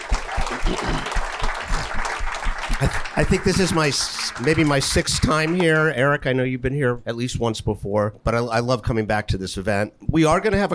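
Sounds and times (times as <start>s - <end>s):
round of applause: 0.0s - 5.9s
speech: 0.6s - 1.1s, 2.8s - 10.7s.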